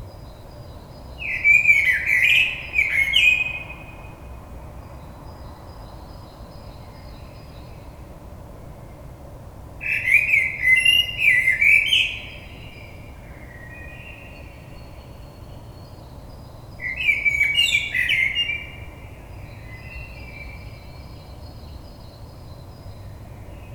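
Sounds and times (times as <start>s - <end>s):
Common blackbird singing: 1.2s - 4.0s, 9.8s - 15.1s, 16.8s - 18.9s.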